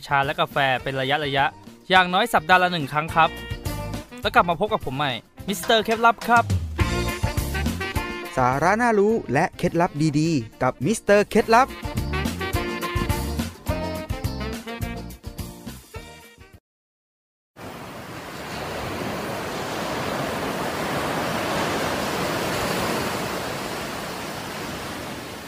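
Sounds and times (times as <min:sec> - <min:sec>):
speech: 0:00.0 - 0:03.5, 0:04.2 - 0:06.6, 0:08.4 - 0:12.0
music: 0:00.0 - 0:16.6
sea waves breaking on a beach: 0:17.6 - 0:25.4.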